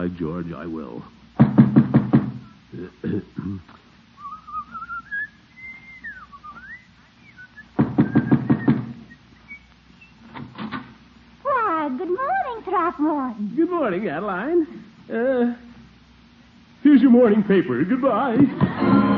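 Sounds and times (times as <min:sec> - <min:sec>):
speech: 0:00.0 - 0:01.2, 0:02.8 - 0:03.8, 0:12.6 - 0:15.6, 0:16.8 - 0:19.0
knocking on a door: 0:01.4 - 0:02.4, 0:07.8 - 0:09.0.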